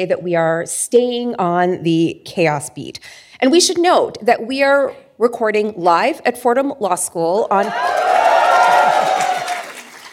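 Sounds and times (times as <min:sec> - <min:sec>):
speech: 0:00.0 - 0:08.3
live audience cheering at Fordham Law School: 0:07.6 - 0:10.1
scattered clapping: 0:07.8 - 0:10.1.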